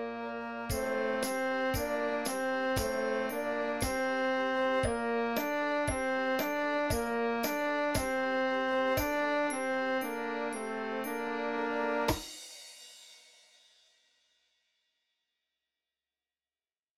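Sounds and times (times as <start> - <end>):
concert duet medley: 0.0 - 12.2.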